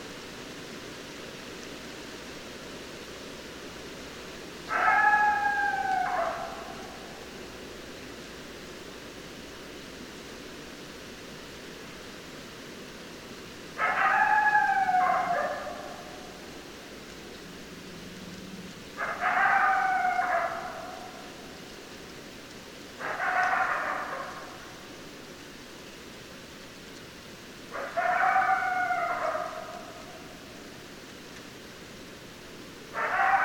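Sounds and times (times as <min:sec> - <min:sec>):
hiss: 0:00.0 - 0:33.4
coyote howling: 0:04.7 - 0:07.3, 0:13.8 - 0:16.5, 0:18.0 - 0:21.5, 0:23.0 - 0:24.7, 0:27.7 - 0:30.4, 0:32.9 - 0:33.4.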